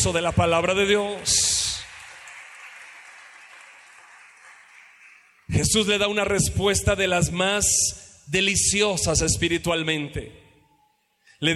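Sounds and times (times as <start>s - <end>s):
speech: 0.0s - 1.7s, 5.5s - 10.4s, 11.4s - 11.5s
audience applauding: 0.0s - 5.5s.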